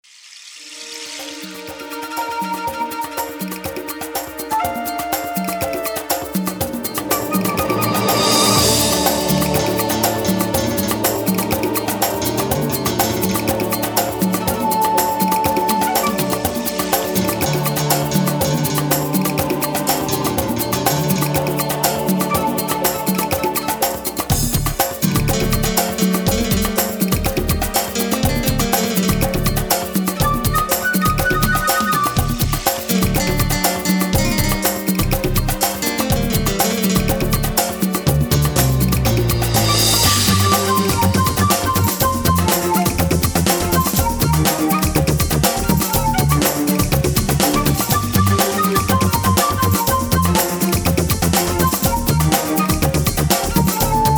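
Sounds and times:
jungle salsa music: 0.7s - 54.1s.

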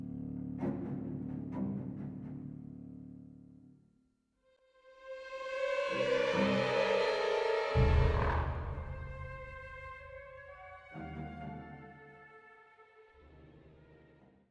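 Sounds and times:
suspense music: 0.0s - 3.6s, 4.9s - 12.6s.

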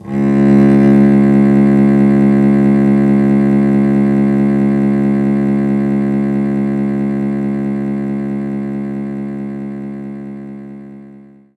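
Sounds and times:
cello C sharp note: 0.0s - 11.5s.

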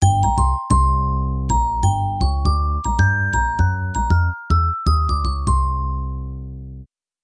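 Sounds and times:
triumphant jingle: 0.0s - 6.5s.

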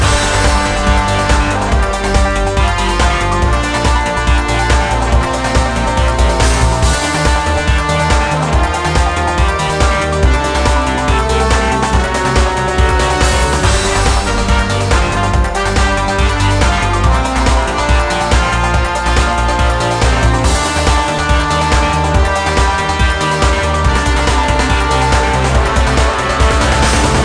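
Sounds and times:
industrial music: 0.0s - 27.2s.

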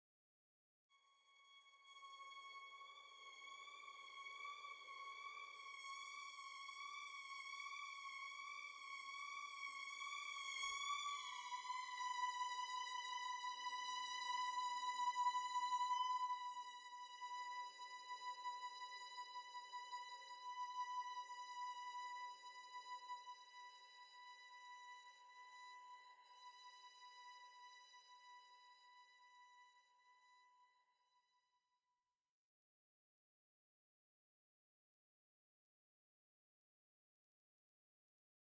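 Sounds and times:
violin: 0.9s - 31.3s.

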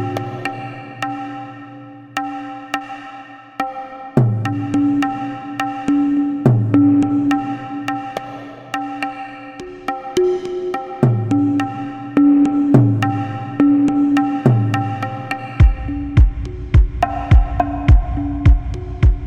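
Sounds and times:
drums: 4.2s - 5.1s, 5.8s - 8.2s, 9.8s - 19.2s.

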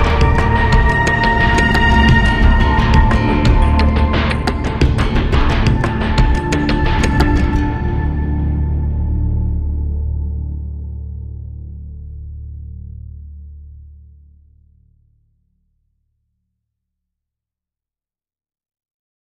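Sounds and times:
forest music: 0.0s - 12.3s.

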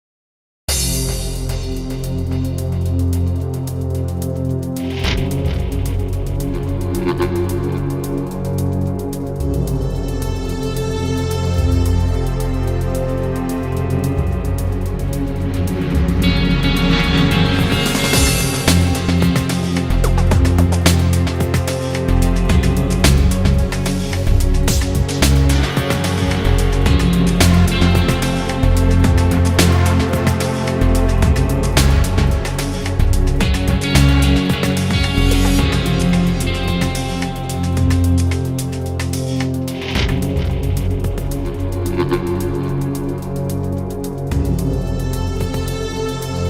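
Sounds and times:
loading music loop: 1.1s - 46.4s.

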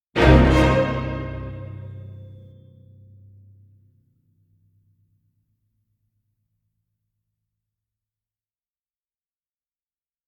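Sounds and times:
orchestral hit: 0.2s - 3.1s.

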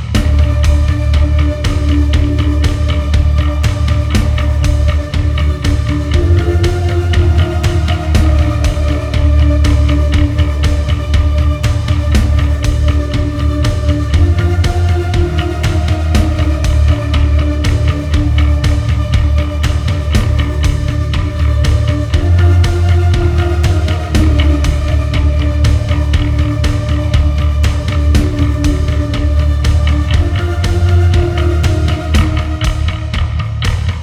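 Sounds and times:
menu music loop: 0.2s - 33.9s.

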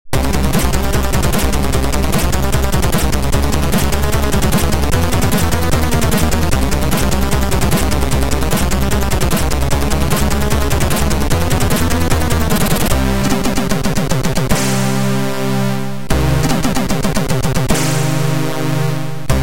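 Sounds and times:
boss fight music: 0.1s - 19.4s.

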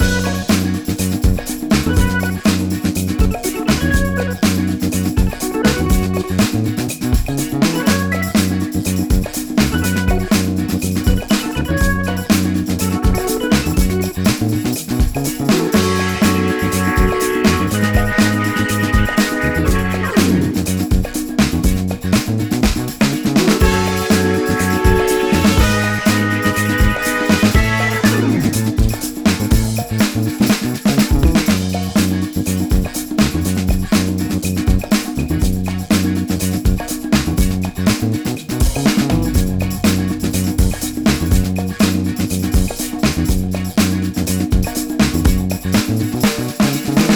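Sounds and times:
boss stage music loop: 0.0s - 47.1s.

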